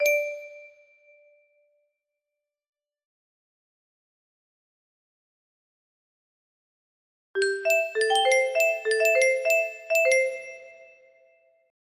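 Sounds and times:
music box melody: 0.0s - 0.8s, 7.4s - 11.1s.

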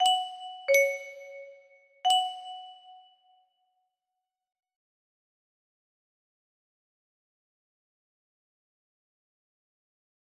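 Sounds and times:
music box melody: 0.0s - 3.1s.

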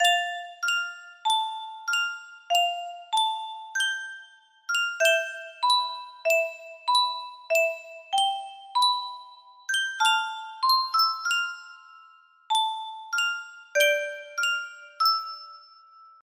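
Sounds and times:
music box melody: 0.0s - 16.3s.

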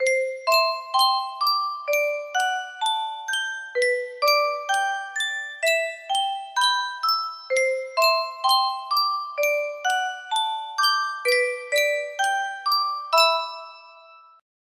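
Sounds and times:
music box: 0.0s - 14.4s.

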